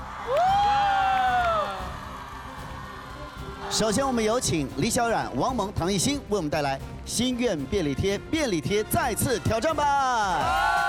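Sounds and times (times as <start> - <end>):
live audience screaming and cheering: 0.0 - 5.5, 10.2 - 10.8
speech: 3.8 - 10.8.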